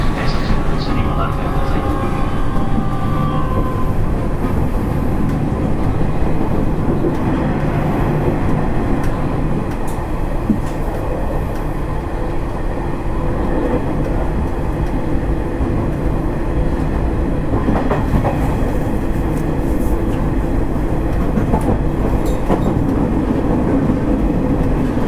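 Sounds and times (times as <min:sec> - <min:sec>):
Nishitetsu 3000 series express train running: 0:00.0 - 0:25.0.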